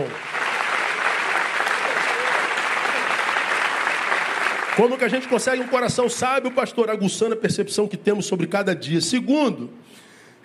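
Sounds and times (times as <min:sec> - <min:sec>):
audience applause: 0:00.0 - 0:06.2
speech: 0:04.8 - 0:10.4.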